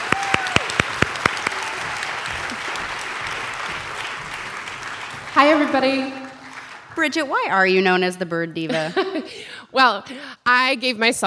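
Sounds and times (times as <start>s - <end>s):
audience clapping: 0.0s - 7.6s
speech: 5.4s - 6.2s, 7.0s - 11.2s
laughter: 8.6s - 9.4s.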